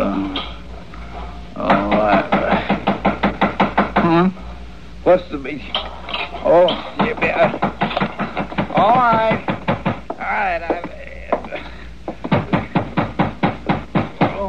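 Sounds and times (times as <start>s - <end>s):
knocking on a locked door: 1.6s - 4.2s, 6.7s - 11.5s, 12.1s - 14.4s
speech: 5.1s - 7.6s.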